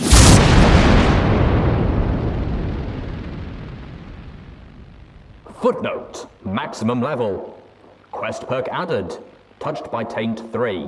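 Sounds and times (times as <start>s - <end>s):
loud explosion amid missile strikes: 0.0s - 5.5s
speech: 5.6s - 10.8s.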